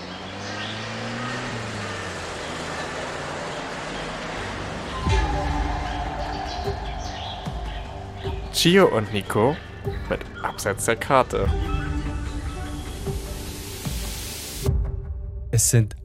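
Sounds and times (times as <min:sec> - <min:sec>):
vehicle jolt: 0:00.0 - 0:12.4
vehicle engine and road rumble driving through dense Mexican jungle: 0:00.0 - 0:14.8
speech: 0:08.6 - 0:11.7, 0:15.7 - 0:16.0.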